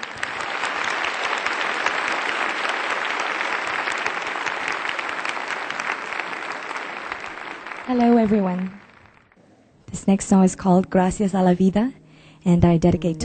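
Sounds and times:
warm welcoming applause: 0.0s - 9.4s
speech: 7.9s - 8.8s, 10.0s - 13.2s.

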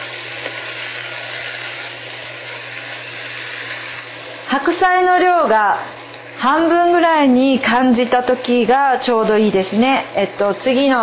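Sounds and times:
konjac stir-frying in a pan: 0.0s - 5.4s
speech: 4.5s - 11.0s.

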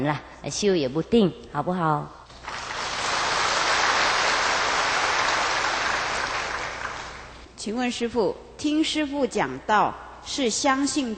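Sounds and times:
speech: 0.0s - 2.2s, 7.6s - 11.1s
applause: 2.3s - 7.4s.

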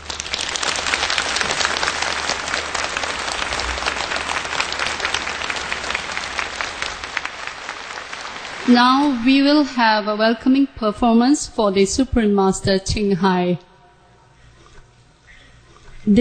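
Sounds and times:
convention hall audience applause: 0.0s - 9.7s
speech: 8.7s - 13.7s.

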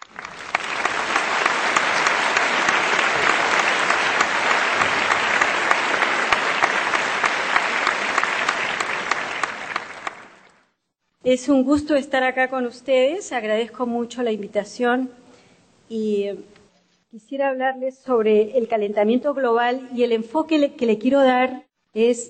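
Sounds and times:
audience applause welcoming a speaker: 0.0s - 10.6s
speech: 11.3s - 15.2s, 15.9s - 16.5s, 17.1s - 22.2s.

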